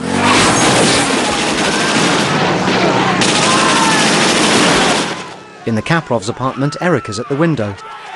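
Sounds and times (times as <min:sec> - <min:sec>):
heavy Browning machine-gun fire in a film scene: 0:00.2 - 0:05.4
speech: 0:05.7 - 0:08.0.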